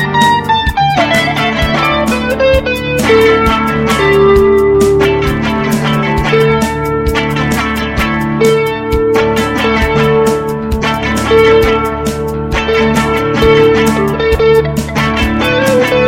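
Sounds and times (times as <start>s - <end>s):
bass: 0.0s - 16.0s
drums: 0.0s - 16.0s
keyboard: 0.0s - 16.0s
rhythm guitar: 0.0s - 16.0s.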